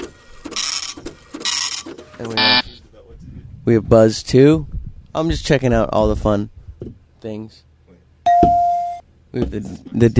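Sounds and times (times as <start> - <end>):
dot matrix printer sound effect: 0.0 - 2.6
speech: 2.2 - 2.7, 3.7 - 7.7, 9.3 - 10.1.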